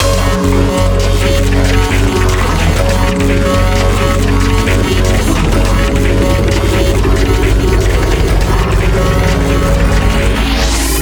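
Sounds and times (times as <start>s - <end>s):
background music: 0.0s - 11.0s.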